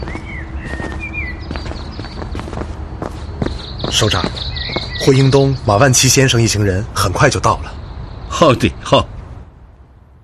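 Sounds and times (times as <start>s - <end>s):
footsteps walking along a mountain path: 0.0s - 5.1s
constant noise: 0.0s - 10.2s
speech: 3.9s - 7.8s, 8.4s - 9.1s.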